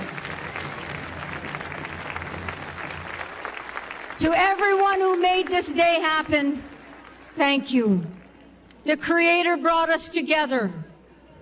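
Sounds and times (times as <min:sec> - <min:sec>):
audience clapping: 0:00.0 - 0:08.8
speech: 0:04.2 - 0:06.7, 0:07.4 - 0:08.1, 0:08.8 - 0:10.8.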